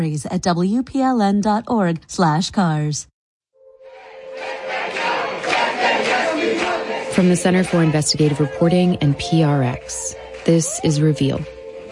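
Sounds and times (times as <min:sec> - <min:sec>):
speech: 0:00.0 - 0:03.1, 0:07.2 - 0:11.6
crowd gathered at Athens airport cheering: 0:03.8 - 0:11.8.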